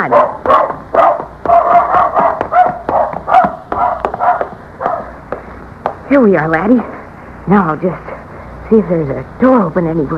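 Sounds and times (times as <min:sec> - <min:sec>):
speech: 0:00.0 - 0:00.7, 0:06.1 - 0:06.9, 0:07.5 - 0:08.1, 0:08.7 - 0:10.1
dog barking: 0:00.0 - 0:05.2.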